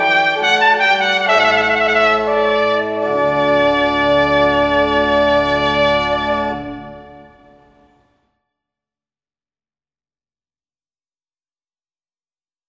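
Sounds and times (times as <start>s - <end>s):
trumpet: 0.0s - 8.2s.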